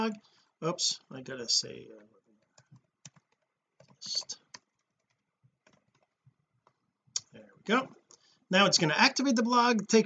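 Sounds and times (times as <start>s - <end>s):
speech: 0.0s - 2.2s, 4.0s - 4.4s, 7.7s - 10.0s
typing a password on a computer keyboard: 2.4s - 6.8s.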